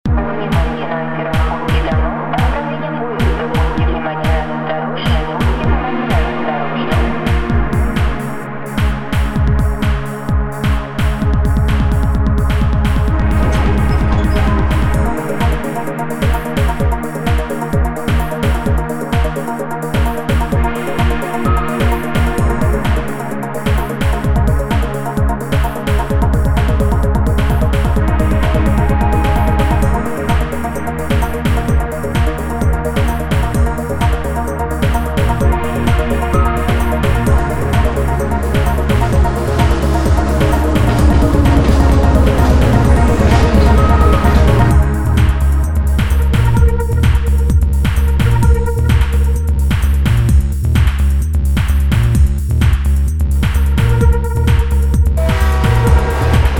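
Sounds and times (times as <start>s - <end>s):
electronic punk music: 0.1s - 56.5s.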